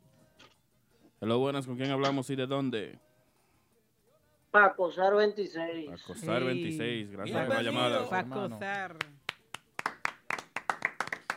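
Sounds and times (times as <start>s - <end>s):
speech: 1.2s - 3.1s, 4.5s - 9.1s
slow hand clapping: 8.7s - 11.3s.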